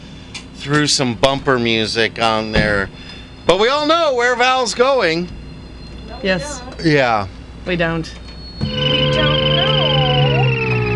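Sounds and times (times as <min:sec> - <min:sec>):
speech: 0:00.6 - 0:05.4, 0:06.2 - 0:09.4
cartoon flying car sound effect: 0:08.6 - 0:10.9.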